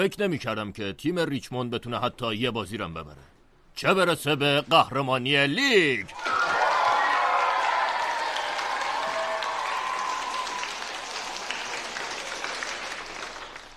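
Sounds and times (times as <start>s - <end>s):
speech: 0.0s - 6.4s
audience applause: 6.1s - 13.7s.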